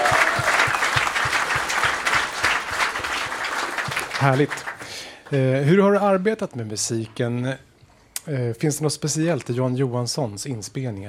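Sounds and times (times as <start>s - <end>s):
crowd applauding: 0.0s - 5.5s
speech: 4.2s - 4.7s, 5.3s - 11.0s.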